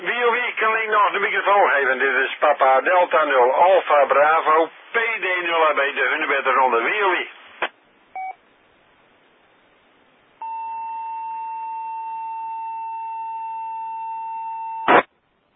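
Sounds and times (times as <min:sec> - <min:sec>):
faint hiss: 0:00.0 - 0:10.4
speech: 0:00.9 - 0:07.4
steady mid-pitched beep on amateur radio: 0:08.2 - 0:08.4, 0:10.4 - 0:14.9
sharp burst of noise: 0:14.9 - 0:15.1.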